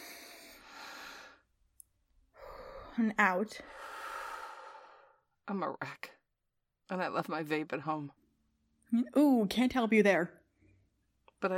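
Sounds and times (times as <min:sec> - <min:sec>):
person breathing in deeply: 0:00.0 - 0:01.5, 0:03.6 - 0:05.2
speech: 0:03.0 - 0:04.0, 0:05.5 - 0:06.2, 0:06.9 - 0:08.2, 0:08.9 - 0:10.4, 0:11.4 - 0:11.5.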